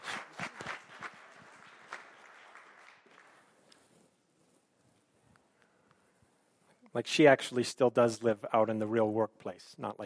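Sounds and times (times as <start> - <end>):
audience applause: 0.0 - 3.7
speech: 7.0 - 10.0.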